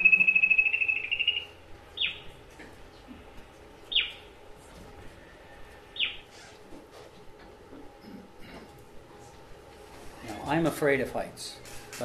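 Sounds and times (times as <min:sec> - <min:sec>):
bird calling before daylight on a forest hike to a canopy walkway: 0:00.0 - 0:02.4, 0:03.9 - 0:04.3, 0:05.9 - 0:06.4
speech: 0:10.5 - 0:12.0.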